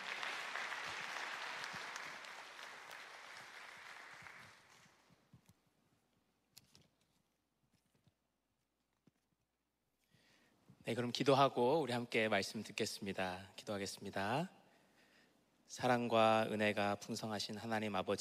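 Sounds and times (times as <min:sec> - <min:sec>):
audience applause: 0:00.0 - 0:05.0
speech: 0:10.9 - 0:14.6, 0:15.7 - 0:18.1.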